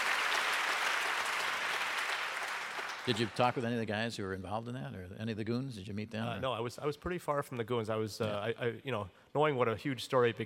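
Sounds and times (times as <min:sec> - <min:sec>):
audience applause: 0:00.0 - 0:03.7
speech: 0:03.1 - 0:10.4.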